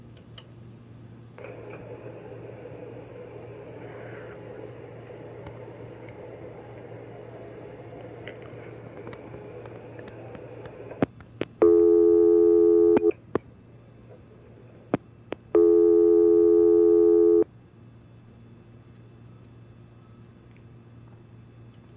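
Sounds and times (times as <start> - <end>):
telephone busy signal: 11.6 - 13.2, 15.6 - 17.5.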